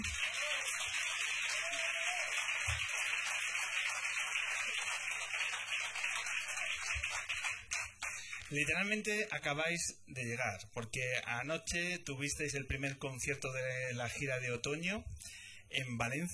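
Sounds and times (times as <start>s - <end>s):
audience applause for the musicians: 0.0s - 8.6s
speech: 8.5s - 16.3s.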